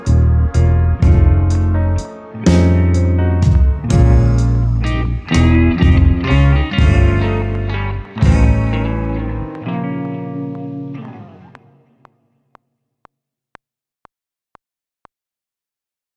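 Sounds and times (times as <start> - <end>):
blues music: 0.0 - 12.2.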